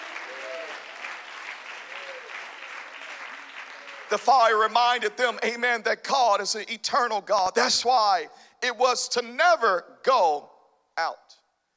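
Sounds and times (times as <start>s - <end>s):
audience clapping hands: 0.0s - 4.7s
speech: 4.1s - 11.4s.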